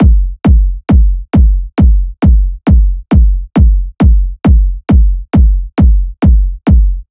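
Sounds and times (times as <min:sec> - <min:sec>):
techno kick drum loop at 135 bpm: 0:00.0 - 0:07.0.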